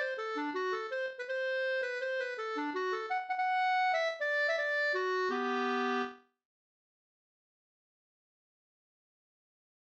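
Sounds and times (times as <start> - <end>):
bridal waltz music: 0.0 - 6.2.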